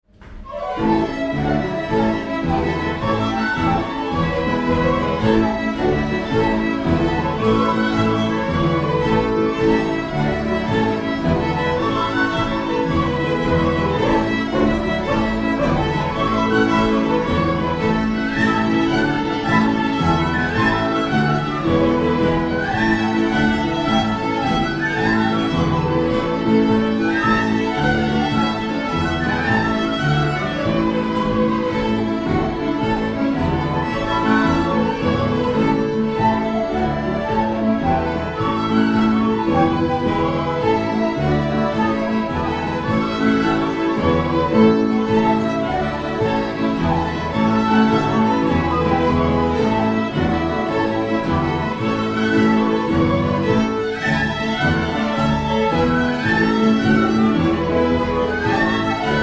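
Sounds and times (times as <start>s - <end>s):
jig in bush music style in arranged parts: 0.2s - 59.2s.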